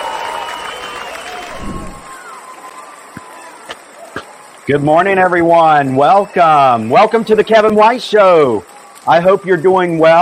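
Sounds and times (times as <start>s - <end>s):
crowd cheering welcoming a show host onto a live stage: 0.0s - 10.1s
speech: 4.7s - 10.1s.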